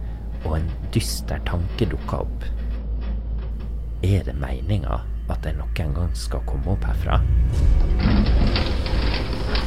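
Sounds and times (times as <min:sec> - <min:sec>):
elevator doors sliding open: 0:00.2 - 0:04.0, 0:07.2 - 0:09.6
speech: 0:00.4 - 0:02.6, 0:04.0 - 0:08.6.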